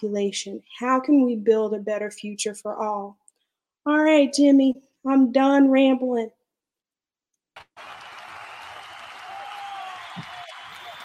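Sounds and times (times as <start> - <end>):
speech: 0.0 - 3.2, 3.8 - 6.4
soft applause: 7.6 - 11.0.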